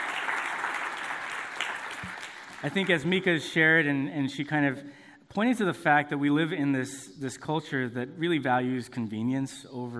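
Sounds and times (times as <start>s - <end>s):
audience applause: 0.0s - 3.0s
speech: 2.6s - 9.9s.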